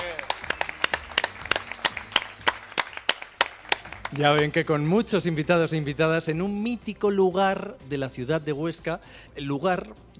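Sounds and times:
scattered applause from a small group: 0.0 - 4.7
speech: 4.1 - 10.1.

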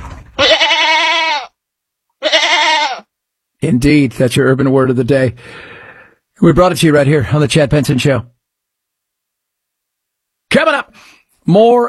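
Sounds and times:
goat bleating: 0.4 - 1.6, 2.2 - 3.1
speech: 3.6 - 5.8, 6.4 - 8.4, 11.5 - 11.8.

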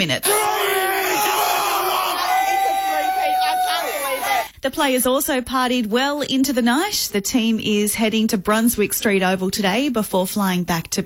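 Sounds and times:
speech: 0.0 - 0.6, 4.6 - 11.0
Lions fans roaring and cheering in Melbourne: 0.2 - 4.5.

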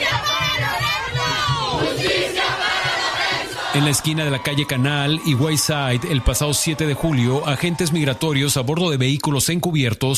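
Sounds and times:
steady low thumping beat: 0.0 - 5.4
protest crowd shouting for justice: 0.0 - 8.4
speech: 3.8 - 10.1.

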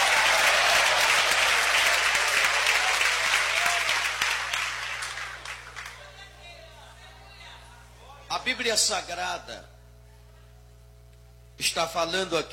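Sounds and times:
church audience clapping: 0.0 - 6.3
speech: 8.4 - 9.7, 11.6 - 12.5.

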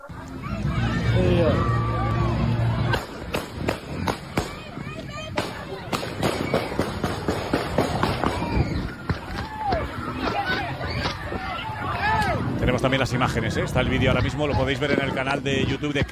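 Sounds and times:
crowd babble: 0.0 - 16.1
gunshots near the England team hotel in Kansas: 2.9 - 4.6, 5.4 - 8.5
speech: 12.9 - 16.1.

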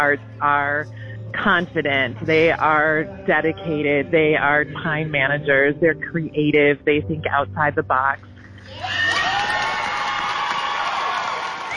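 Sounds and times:
speech: 0.0 - 9.2
audience applause and cheering: 8.6 - 11.7.

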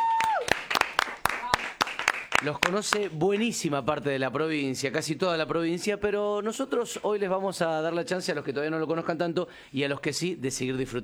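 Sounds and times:
high downward whistle: 0.0 - 0.6
sparse applause: 0.0 - 3.6
speech: 2.4 - 11.0.

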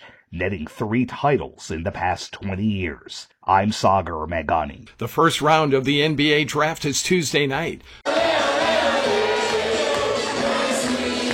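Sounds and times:
speech: 0.3 - 9.2
football fans cheering in Buenos Aires: 8.1 - 11.3.

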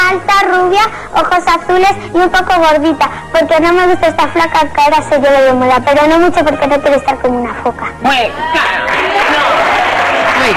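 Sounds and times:
speech: 0.4 - 9.2
large group of adults clapping: 8.4 - 10.5.

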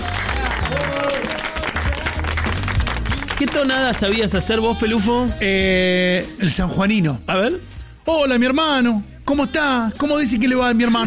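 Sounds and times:
audience applause: 0.0 - 4.3
speech: 3.4 - 11.0.

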